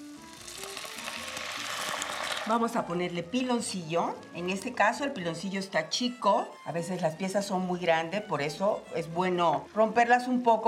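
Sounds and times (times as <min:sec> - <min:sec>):
water poured onto toasted chiles in a hot pan, sizzling: 0:00.0 - 0:05.1
speech: 0:02.5 - 0:10.6.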